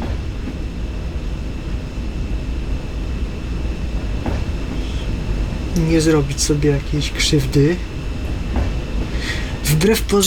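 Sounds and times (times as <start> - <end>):
electric train clack: 0.0 - 0.6, 4.2 - 4.9, 8.2 - 9.2
electric train coasting slowly with traction motors off: 0.0 - 10.2
faint high whine of electric train: 0.0 - 10.2
speech: 5.8 - 7.9, 9.7 - 10.2.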